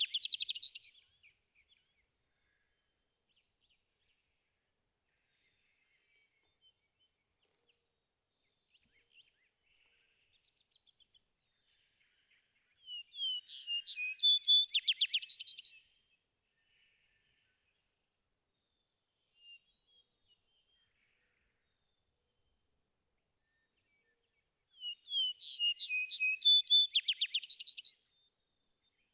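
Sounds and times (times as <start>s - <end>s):
vesper sparrow calling: 0.0s - 1.0s, 12.9s - 15.8s, 24.8s - 28.0s.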